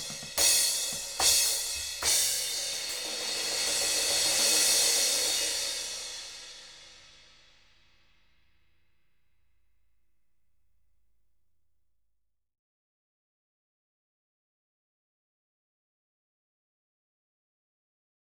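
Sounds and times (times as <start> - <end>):
cymbals: 0.0 - 7.7.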